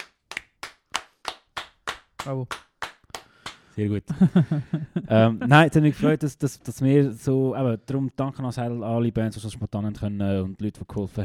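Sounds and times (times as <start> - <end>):
steady rhythmic clapping: 0.0 - 3.8
speech: 2.2 - 2.7, 3.8 - 11.2
laughter: 4.1 - 6.2.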